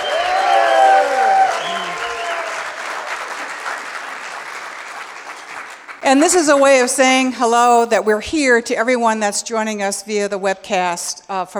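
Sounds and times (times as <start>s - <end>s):
applause from a large audience: 0.0s - 6.0s
crowd cheering and whooping: 0.0s - 6.6s
speech: 6.1s - 11.5s.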